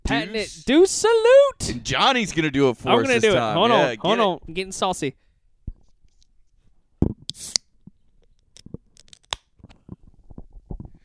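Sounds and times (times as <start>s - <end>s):
speech: 0.1s - 5.2s
can opening crack and hiss: 7.3s - 7.6s.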